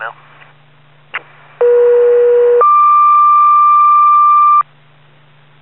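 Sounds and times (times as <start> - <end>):
ambulance: 1.6 - 4.6.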